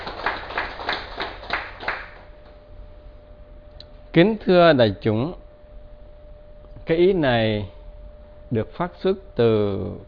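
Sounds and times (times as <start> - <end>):
audience applause: 0.0 - 2.3
speech: 4.2 - 5.4, 6.9 - 7.8, 8.5 - 10.0.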